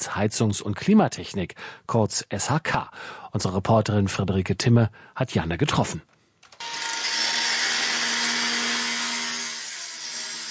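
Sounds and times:
speech: 0.0s - 6.2s
construction site tool grinding rasp: 6.6s - 10.4s.

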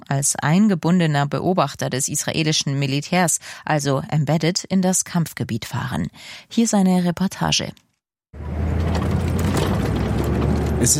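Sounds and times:
speech: 0.1s - 7.8s, 10.8s - 10.9s
Israeli army convoy vehicle engines rumbling at night: 8.4s - 10.9s.

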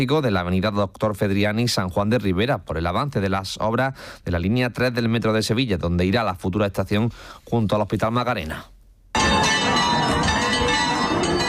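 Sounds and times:
speech: 0.0s - 8.8s
church bells ringing: 9.2s - 11.4s.

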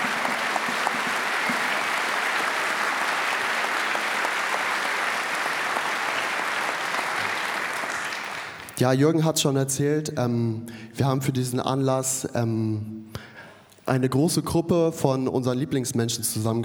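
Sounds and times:
audience applause: 0.0s - 8.8s
speech: 8.8s - 13.3s, 13.9s - 16.6s.

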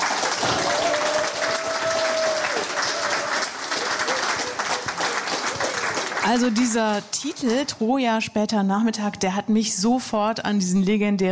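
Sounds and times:
audience applause: 0.0s - 7.7s
speech: 6.3s - 11.3s.

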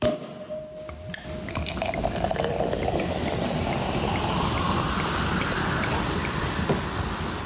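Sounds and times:
sparkling wine pouring into a glass: 1.2s - 7.1s
dense fizzing and crackling bubbles: 1.3s - 7.4s.

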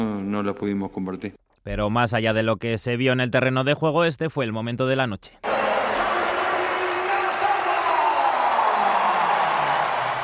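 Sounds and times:
speech: 0.0s - 6.0s
stadium crowd standing and applauding: 5.4s - 10.2s.

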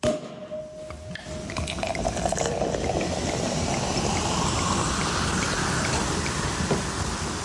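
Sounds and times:
sparkling wine bottle being opened: 0.6s - 6.1s
sparkling wine being poured: 1.0s - 7.2s
sparkling wine bubbles fizzing and crackling: 1.3s - 7.4s.

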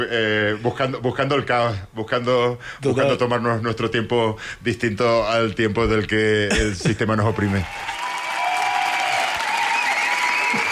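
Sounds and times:
speech: 0.0s - 7.9s
audience applause: 7.3s - 10.6s.

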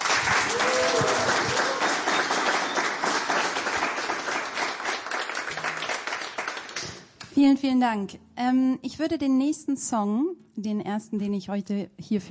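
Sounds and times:
audience applause: 0.0s - 7.2s
speech: 7.4s - 12.2s.

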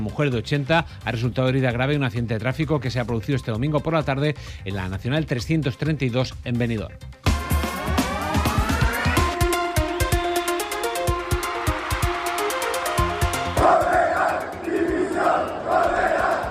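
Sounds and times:
speech: 0.0s - 7.3s
rhythmic clapping or drumbeats: 7.3s - 16.4s
football fans chanting: 13.3s - 16.4s
football fans shouting: 13.6s - 16.4s.

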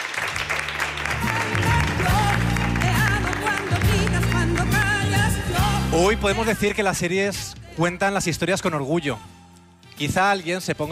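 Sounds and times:
audience applause: 0.0s - 5.0s
speech: 6.0s - 9.4s, 10.0s - 10.8s.

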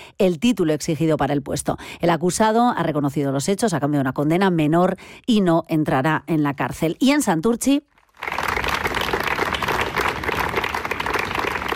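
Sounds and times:
speech: 0.2s - 8.4s
townspeople applauding at a protest against sexist assaults in Santurtzi: 8.1s - 11.7s.

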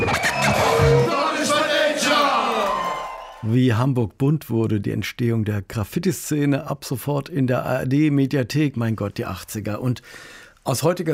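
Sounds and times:
audience applause and cheering: 0.0s - 3.6s
speech: 3.4s - 11.1s.

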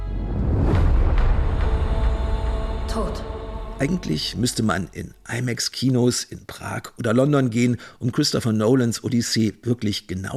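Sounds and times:
thunder: 0.1s - 3.7s
speech: 3.8s - 10.3s.

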